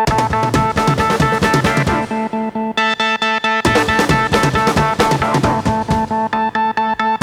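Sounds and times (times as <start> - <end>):
organ playing: 0.1 - 7.2.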